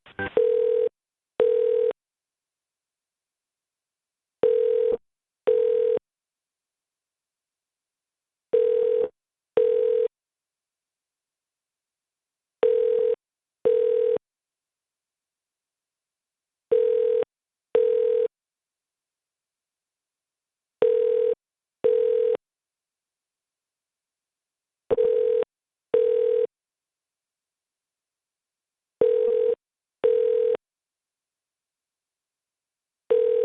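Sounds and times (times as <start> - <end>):
telephone ringing tone on a line being transferred to a hotel operator: 0.2 - 1.9, 4.4 - 6.0, 8.6 - 10.1, 12.6 - 14.2, 16.7 - 17.2, 17.8 - 18.3, 20.8 - 22.4, 24.9 - 25.4, 26.0 - 26.5, 29.0 - 30.6, 33.1 - 33.4.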